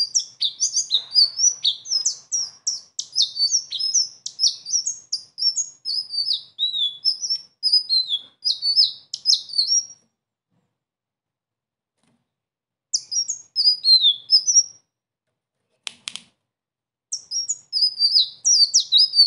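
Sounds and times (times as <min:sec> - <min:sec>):
sunbird singing a high-pitched twittering song: 0:00.0 - 0:10.0, 0:12.9 - 0:14.8, 0:17.1 - 0:19.2.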